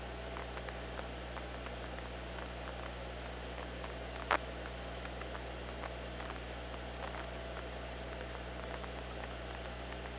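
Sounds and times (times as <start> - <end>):
killer whale clicking: 0.3 - 10.1.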